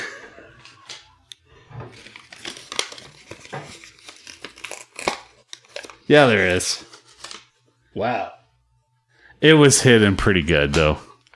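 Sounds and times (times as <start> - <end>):
paper envelope crinkling and rustling as it is handled and searched: 1.9 - 7.6
speech: 6.1 - 6.9, 8.0 - 8.4, 9.4 - 11.1.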